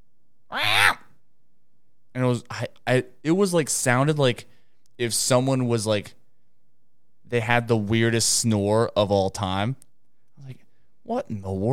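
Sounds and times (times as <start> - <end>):
person imitating a cat's meow: 0.5 - 1.1
speech: 2.2 - 6.2, 7.3 - 9.8, 10.4 - 11.7.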